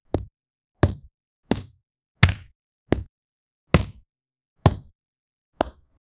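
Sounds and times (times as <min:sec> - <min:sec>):
basketball being hit: 0:02.2 - 0:02.5.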